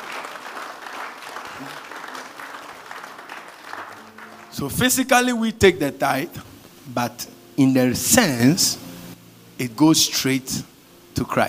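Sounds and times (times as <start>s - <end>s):
audience applause: 0.0s - 4.6s
speech: 1.6s - 1.9s, 4.6s - 8.8s, 9.6s - 11.4s.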